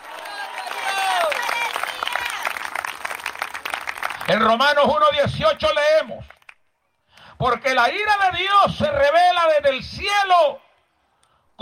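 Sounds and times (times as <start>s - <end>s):
audience applause: 0.0s - 4.6s
speech: 4.3s - 6.3s, 7.4s - 10.6s.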